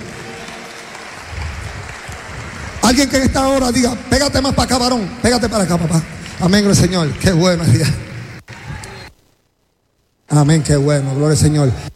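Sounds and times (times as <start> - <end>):
congregation applauding during a church service: 0.0 - 8.9
speech: 2.9 - 8.1, 10.3 - 11.9.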